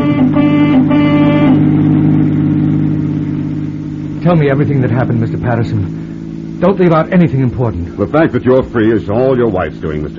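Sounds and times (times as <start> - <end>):
police car rushing through city streets: 0.0 - 10.1
speech: 4.2 - 6.0, 6.6 - 10.1.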